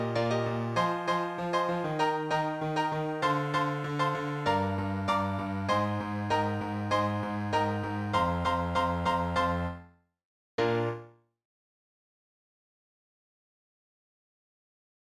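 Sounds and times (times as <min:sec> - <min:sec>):
musical accompaniment: 0:00.0 - 0:09.8, 0:10.6 - 0:11.1.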